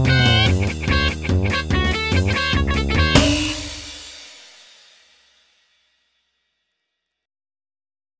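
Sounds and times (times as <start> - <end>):
instrumental theme music: 0.0 - 5.1.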